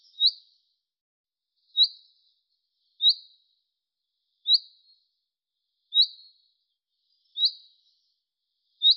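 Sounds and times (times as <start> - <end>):
bird giving short high chirps: 0.0 - 0.6, 1.6 - 3.5, 4.4 - 5.0, 5.9 - 8.9.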